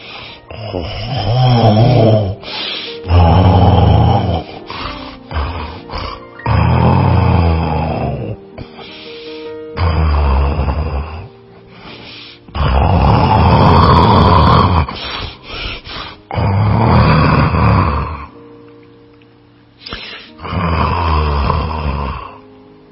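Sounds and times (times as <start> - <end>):
wolf snoring loudly while asleep: 0.4 - 8.7, 9.7 - 11.3, 12.5 - 18.3, 20.2 - 22.4.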